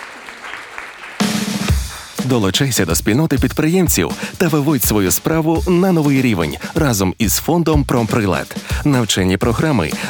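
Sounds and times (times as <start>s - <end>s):
audience applause after a question-and-answer session at a talk: 0.0s - 2.2s
speech: 2.3s - 10.0s.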